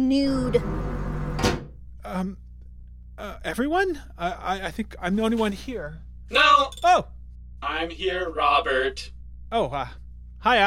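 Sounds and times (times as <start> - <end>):
speech: 0.0 - 2.4, 3.2 - 10.6
door being closed: 0.7 - 1.7.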